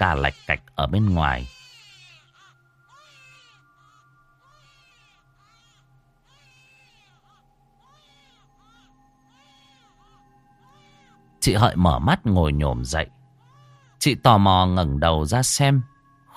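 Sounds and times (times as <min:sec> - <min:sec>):
speech: 0:00.0 - 0:01.6, 0:11.4 - 0:13.2, 0:14.0 - 0:16.3
distant baby crying: 0:00.0 - 0:11.4, 0:13.4 - 0:14.0.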